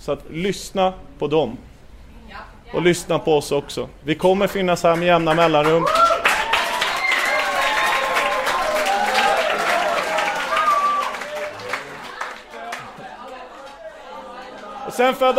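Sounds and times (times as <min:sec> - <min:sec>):
speech: 0:00.0 - 0:01.7, 0:02.3 - 0:06.0, 0:15.0 - 0:15.3
spontaneous applause from crowd: 0:05.0 - 0:14.7
crowd voices and calls: 0:06.6 - 0:15.3.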